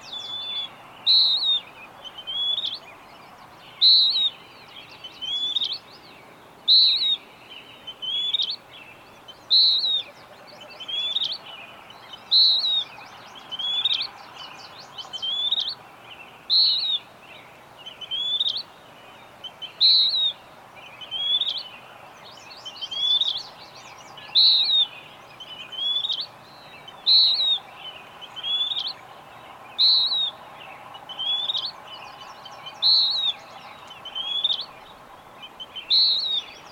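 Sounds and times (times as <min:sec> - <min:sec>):
bird singing clear falling whistles: 0:00.0 - 0:02.9, 0:03.7 - 0:05.8, 0:06.7 - 0:07.2, 0:07.9 - 0:08.6, 0:09.3 - 0:10.2, 0:12.1 - 0:12.9, 0:15.0 - 0:15.8, 0:16.5 - 0:17.1, 0:17.8 - 0:18.7, 0:19.4 - 0:20.4, 0:21.0 - 0:21.7, 0:22.6 - 0:29.0, 0:29.8 - 0:30.4, 0:31.1 - 0:34.8, 0:35.6 - 0:36.7
constant background hiss: 0:00.0 - 0:36.7.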